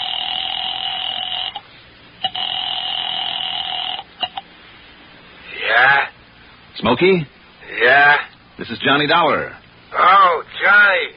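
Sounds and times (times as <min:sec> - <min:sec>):
telephone ringing during a phone call: 0:00.0 - 0:01.6, 0:02.2 - 0:04.4
speech: 0:06.8 - 0:11.1.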